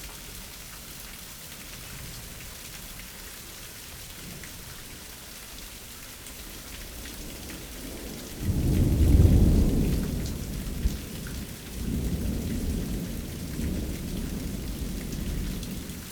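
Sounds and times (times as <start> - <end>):
spring thunderstorm in suburbs: 6.9 - 16.1.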